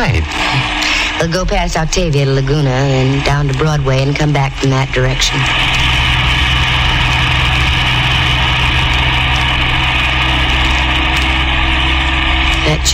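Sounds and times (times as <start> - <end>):
car engine running: 0.0 - 12.9
speech: 1.2 - 5.7, 12.7 - 12.9.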